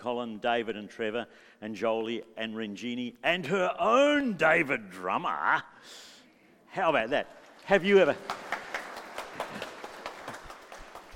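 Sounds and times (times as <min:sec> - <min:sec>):
speech: 0:00.0 - 0:06.1, 0:06.7 - 0:08.5
people clapping: 0:07.2 - 0:11.1.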